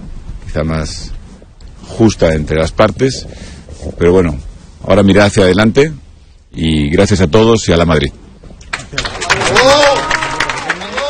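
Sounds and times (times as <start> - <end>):
speech: 0.5 - 1.2, 1.8 - 8.2
audience applause after speech: 8.6 - 11.0.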